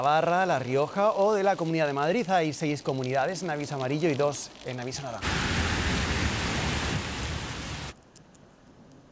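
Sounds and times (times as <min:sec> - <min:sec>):
speech: 0:00.0 - 0:05.6
heavy downpour with hail: 0:05.0 - 0:08.0.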